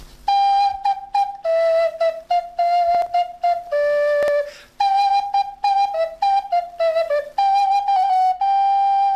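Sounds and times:
small soprano horn playing a high melody an octave higher: 0.2s - 9.1s
player breathing between phrases: 4.5s - 4.8s.

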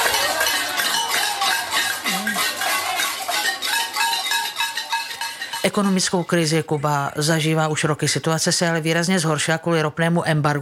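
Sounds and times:
banging on pots in street protest: 0.0s - 7.5s
speech: 5.6s - 10.5s.

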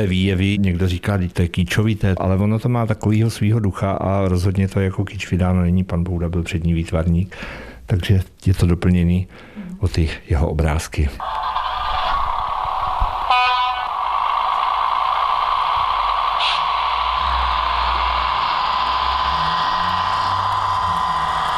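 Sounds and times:
speech: 0.0s - 11.6s
train departing: 11.2s - 21.5s.

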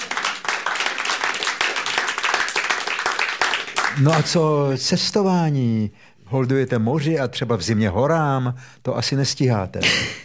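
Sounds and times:
applause: 0.0s - 4.4s
speech: 4.0s - 10.2s.

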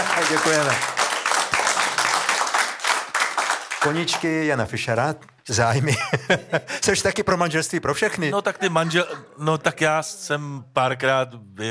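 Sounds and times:
audience applause: 0.0s - 5.0s
speech: 0.2s - 0.9s, 3.8s - 11.6s
laughter: 5.7s - 7.0s, 8.2s - 9.4s.

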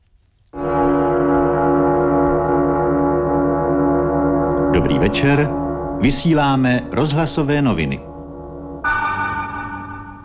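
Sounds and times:
gong-style radio news jingle: 0.6s - 10.2s
speech: 4.8s - 8.1s.

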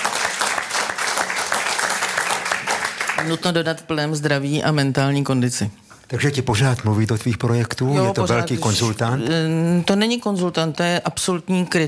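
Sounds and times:
audience applause: 0.0s - 3.4s
speech: 3.2s - 11.8s.

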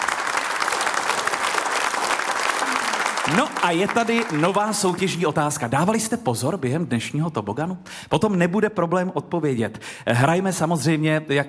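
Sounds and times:
applause: 0.0s - 5.7s
speech: 3.3s - 11.4s.

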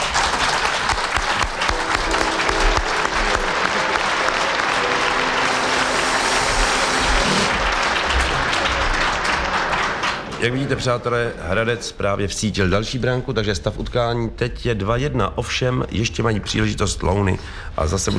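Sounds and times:
audience applauding: 0.0s - 11.3s
speech: 10.4s - 18.1s.

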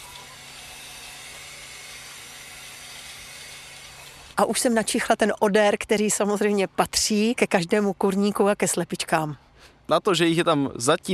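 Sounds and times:
automatic water refilling into a tank: 0.0s - 4.4s
speech: 4.4s - 11.1s.

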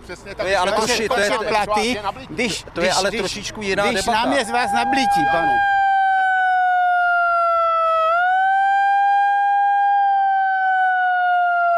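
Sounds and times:
speech: 0.1s - 5.7s
small portable siren blaring: 3.8s - 11.7s.

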